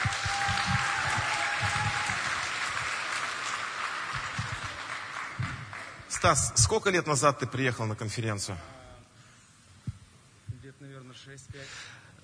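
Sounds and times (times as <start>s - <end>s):
crowd clapping: 0.0s - 6.5s
speech: 6.2s - 8.8s.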